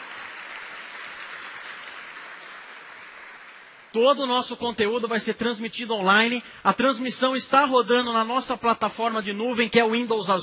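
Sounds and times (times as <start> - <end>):
audience applause: 0.0 - 4.0
speech: 3.9 - 10.4.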